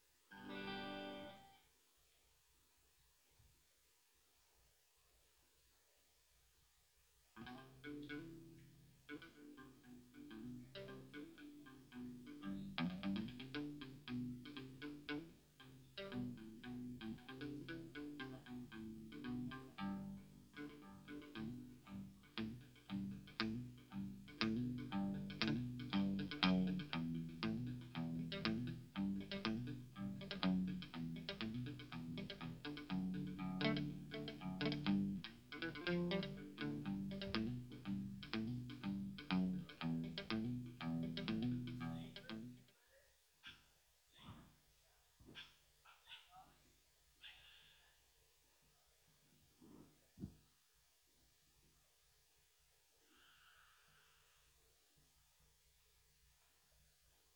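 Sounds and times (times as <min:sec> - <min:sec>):
guitar soundcheck: 0:00.3 - 0:01.6, 0:07.4 - 0:42.6.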